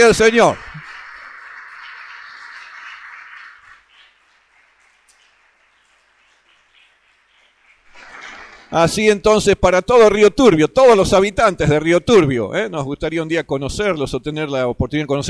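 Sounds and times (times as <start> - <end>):
speech: 0.0 - 0.6, 8.7 - 15.2
audience applauding: 0.0 - 8.8.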